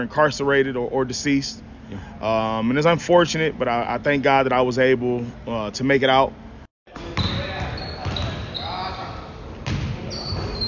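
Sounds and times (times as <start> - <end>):
speech: 0.0 - 6.4
basketball bouncing: 6.9 - 8.4, 9.6 - 10.5
shoes squeaking on floor: 7.0 - 9.0, 10.0 - 10.6.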